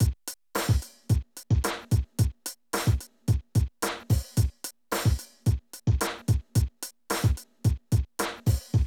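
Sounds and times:
hip-hop drum loop: 0.0 - 8.8.

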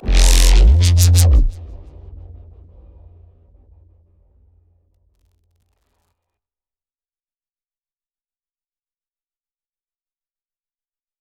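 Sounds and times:
techno reese bass: 0.0 - 2.9.

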